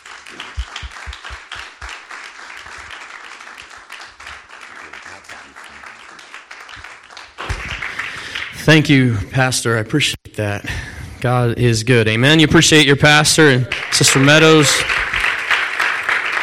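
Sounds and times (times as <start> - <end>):
church congregation applause welcoming guests to the pulpit: 0.0 - 8.7, 13.5 - 16.4
speech: 8.7 - 15.1.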